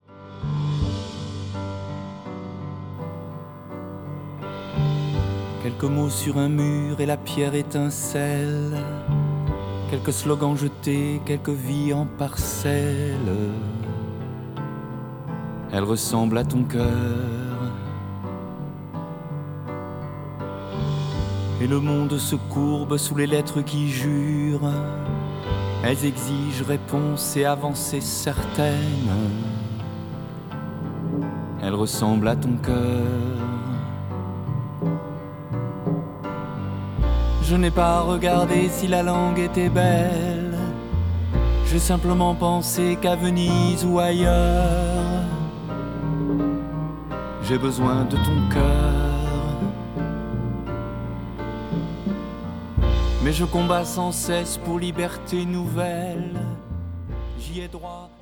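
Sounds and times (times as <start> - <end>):
piano: 0.0 - 58.2
person singing: 4.9 - 14.5, 15.7 - 18.4, 21.2 - 30.5, 31.1 - 35.1, 37.1 - 52.2, 53.0 - 58.2.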